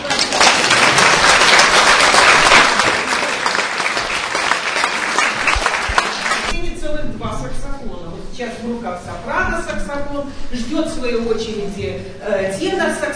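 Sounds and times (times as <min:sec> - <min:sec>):
large audience applause: 0:00.0 - 0:06.5
speech: 0:10.1 - 0:13.1.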